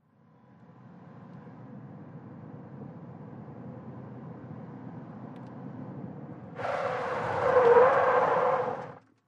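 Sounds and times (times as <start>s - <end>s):
small compact car 180 skid: 6.6s - 9.0s.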